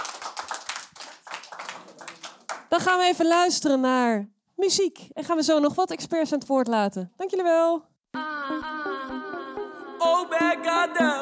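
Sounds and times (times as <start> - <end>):
crowd applauding: 0.0 - 2.7
speech: 2.7 - 7.9, 10.1 - 11.2.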